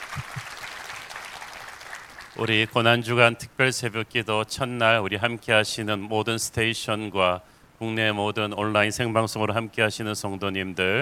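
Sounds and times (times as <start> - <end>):
people clapping: 0.0 - 2.6
speech: 2.4 - 11.0.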